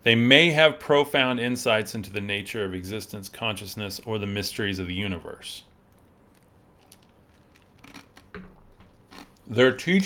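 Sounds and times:
speech: 0:00.0 - 0:05.7, 0:09.5 - 0:10.0
person crunching on ice: 0:06.3 - 0:09.5.

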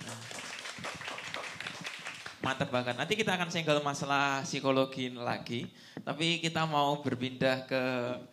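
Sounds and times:
people clapping: 0:00.0 - 0:03.0
speech: 0:02.5 - 0:08.3.

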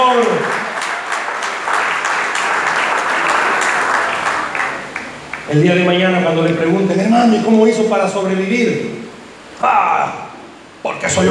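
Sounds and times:
audience applause: 0:00.0 - 0:05.6
speech: 0:05.5 - 0:09.0, 0:09.6 - 0:10.2, 0:10.9 - 0:11.2.

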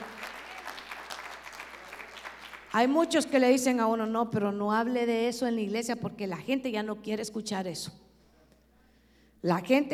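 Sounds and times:
audience clapping: 0:00.0 - 0:03.2
speech: 0:02.8 - 0:08.0, 0:09.4 - 0:09.9.

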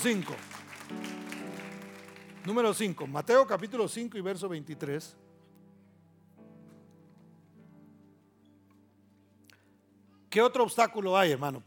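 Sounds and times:
speech: 0:00.0 - 0:01.1, 0:02.4 - 0:05.2, 0:10.3 - 0:11.6
audience applause: 0:00.0 - 0:03.2.

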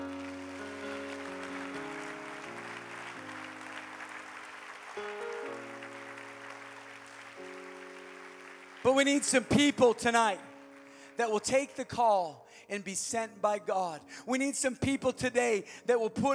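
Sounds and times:
audience clapping: 0:00.0 - 0:11.1
speech: 0:08.8 - 0:10.5, 0:11.2 - 0:16.3.

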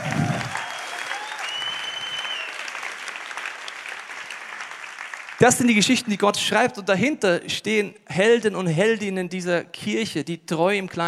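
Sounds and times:
audience applause: 0:00.0 - 0:05.8
speech: 0:05.4 - 0:11.0.

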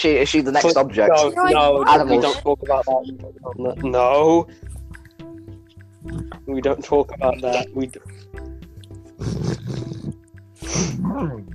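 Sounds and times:
speech: 0:00.0 - 0:04.7, 0:06.0 - 0:08.5, 0:10.6 - 0:11.5
pet animal growling: 0:09.1 - 0:11.5.

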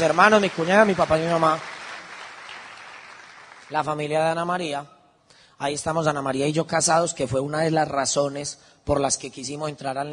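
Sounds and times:
speech: 0:00.0 - 0:01.7, 0:03.7 - 0:05.0, 0:05.6 - 0:10.1
crowd applause: 0:00.0 - 0:03.9.

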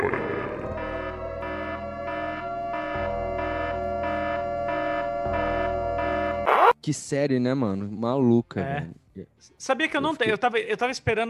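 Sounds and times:
two-pitch electronic siren wailing: 0:00.0 - 0:06.8
speech: 0:06.8 - 0:11.2.

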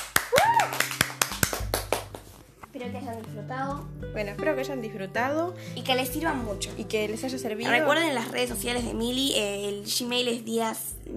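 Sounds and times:
small applause: 0:00.0 - 0:02.3
speech: 0:02.8 - 0:11.1.

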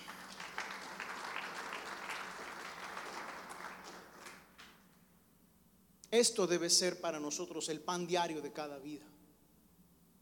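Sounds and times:
crowd applauding: 0:00.0 - 0:04.8
speech: 0:06.1 - 0:09.2.

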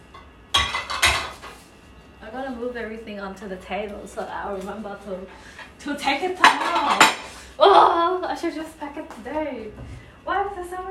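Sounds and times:
ceramic plates clinking: 0:00.5 - 0:01.6, 0:06.4 - 0:07.3
speech: 0:02.3 - 0:10.8.

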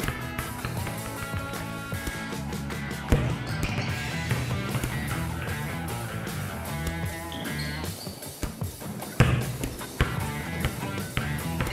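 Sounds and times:
shoes on gym floor: 0:00.0 - 0:11.7
volleyball bouncing: 0:00.0 - 0:11.7
volleyballs being spiked: 0:00.0 - 0:11.7.

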